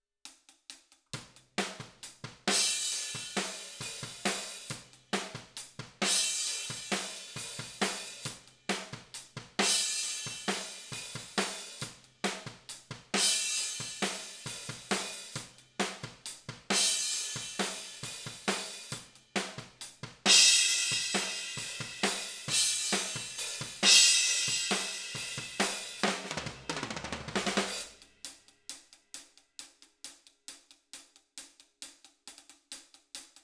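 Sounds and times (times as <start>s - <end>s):
ride cymbal: 1.2s - 29.8s.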